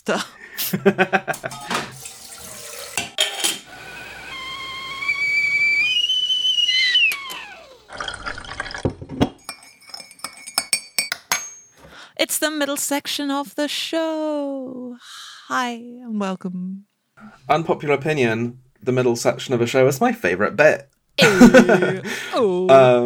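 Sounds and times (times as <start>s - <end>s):
speech: 0.0s - 1.6s, 12.4s - 14.8s, 15.5s - 16.9s, 17.5s - 23.0s
laughter: 0.6s - 1.9s, 21.2s - 22.4s
kettle: 1.4s - 11.6s.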